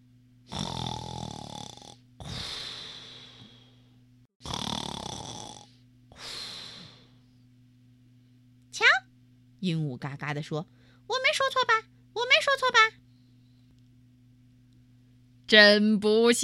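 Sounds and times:
steady low hum: 0.0 - 16.4
hippo snoring: 0.5 - 3.7, 4.4 - 7.1
speech: 9.6 - 11.8, 15.5 - 16.4.

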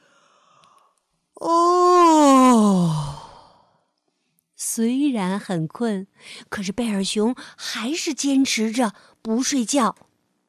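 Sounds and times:
yawn: 1.4 - 3.7
speech: 4.8 - 10.1.

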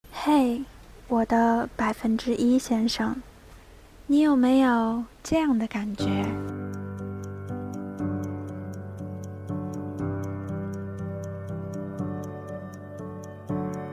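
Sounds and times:
speech: 0.2 - 3.3, 4.1 - 6.6
clock ticking: 5.4 - 13.9.

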